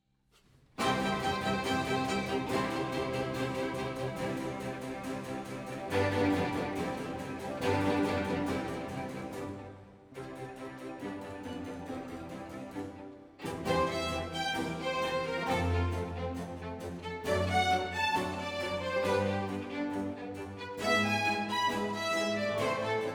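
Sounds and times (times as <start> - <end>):
orchestral piece: 0.8 - 23.1.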